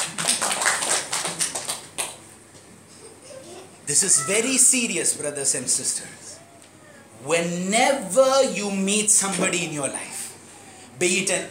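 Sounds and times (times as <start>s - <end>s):
crowd clapping: 0.0s - 2.3s
speech: 3.9s - 6.4s, 7.2s - 10.1s, 11.0s - 11.4s.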